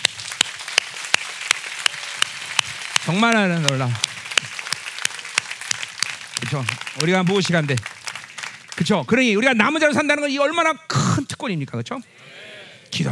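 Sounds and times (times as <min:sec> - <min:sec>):
audience applause: 0:00.0 - 0:09.3
speech: 0:03.0 - 0:04.1, 0:06.5 - 0:07.9, 0:08.8 - 0:12.4, 0:13.0 - 0:13.1.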